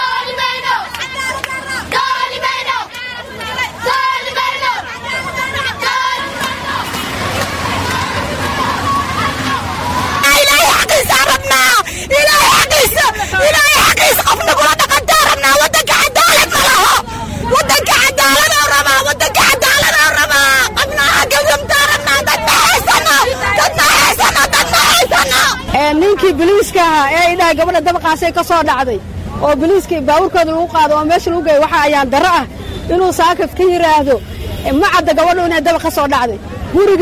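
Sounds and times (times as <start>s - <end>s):
protesters, mostly women, shouting slogans in Mogadishu: 0.0s - 27.0s
speech: 26.4s - 36.9s.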